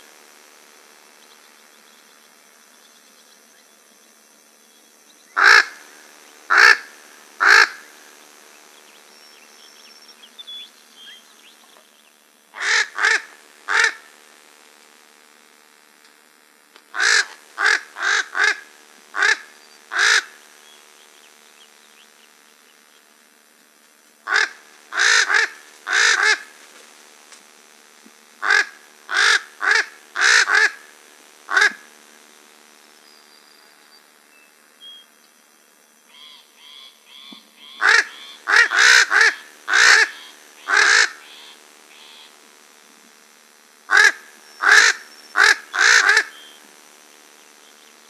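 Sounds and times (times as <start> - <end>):
corvids calling: 5.4 - 5.8, 6.5 - 7.8, 12.6 - 14.0, 16.9 - 18.6, 19.2 - 20.4, 24.3 - 26.4, 28.4 - 30.8, 31.5 - 31.8, 36.2 - 42.3, 43.9 - 46.3.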